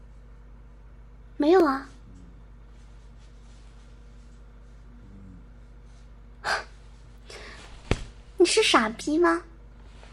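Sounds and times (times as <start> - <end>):
speech: 1.4 - 1.9, 8.4 - 9.5
dog snoring under a stool: 2.0 - 2.6, 4.8 - 5.7.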